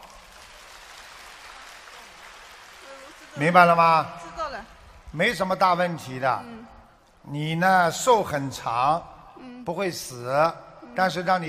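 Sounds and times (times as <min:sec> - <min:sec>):
audience applause: 0:00.0 - 0:04.5
speech: 0:03.4 - 0:04.2, 0:05.1 - 0:11.4.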